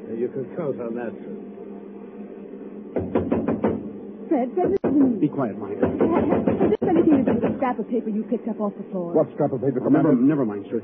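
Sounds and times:
low room hum: 0:00.0 - 0:10.8
speech: 0:00.2 - 0:01.6, 0:04.3 - 0:10.8
knuckles rapping on a wooden door: 0:03.0 - 0:03.8, 0:05.8 - 0:07.6.

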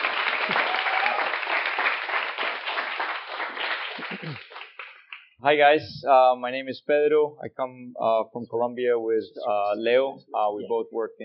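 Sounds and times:
audience applause: 0:00.0 - 0:05.0
speech: 0:05.4 - 0:11.2.

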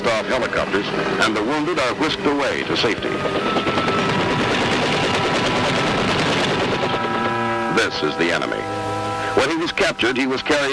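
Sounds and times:
speech: 0:00.1 - 0:03.8, 0:07.8 - 0:10.7
heavy machine gun ground fire: 0:03.1 - 0:07.5.

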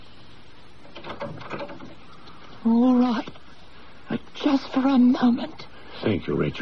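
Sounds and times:
door closing: 0:00.8 - 0:02.1
speech: 0:02.6 - 0:03.4, 0:04.4 - 0:06.5.

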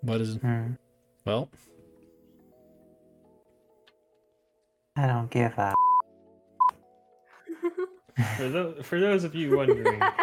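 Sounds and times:
speech: 0:00.0 - 0:01.7, 0:05.0 - 0:05.9, 0:07.7 - 0:10.2
electronic beep from a stock availability alarm: 0:05.7 - 0:06.8
laughter: 0:09.4 - 0:10.2.

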